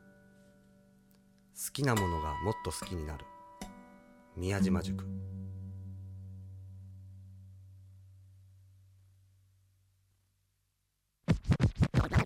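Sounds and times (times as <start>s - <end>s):
speech: 1.6s - 3.4s, 4.4s - 5.3s
low steady tone: 2.0s - 10.4s
vinyl record scratching on turntable: 11.3s - 12.2s.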